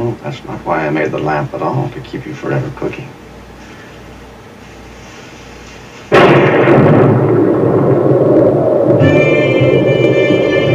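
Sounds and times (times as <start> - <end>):
faint high tonal whine: 0.0 - 10.7
speech: 0.1 - 3.2
roaring wind: 6.1 - 10.7
thunder: 6.1 - 10.7.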